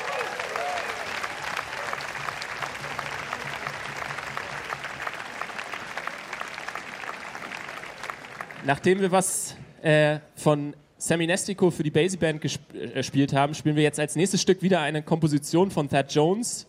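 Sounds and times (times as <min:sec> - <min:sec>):
crowd murmur: 0:00.0 - 0:08.6
audience applause: 0:00.0 - 0:09.0
speech: 0:08.6 - 0:16.6.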